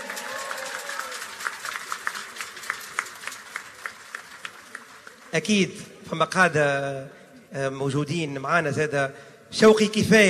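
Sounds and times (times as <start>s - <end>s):
warm applause: 0.0s - 5.7s
speech: 5.4s - 10.2s.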